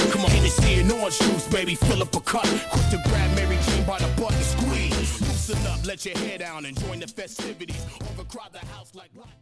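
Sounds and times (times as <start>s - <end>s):
hype record scratch: 0.0s - 5.8s.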